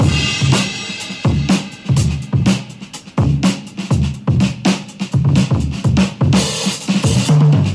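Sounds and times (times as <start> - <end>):
funky drum loops: 0.0 - 7.7.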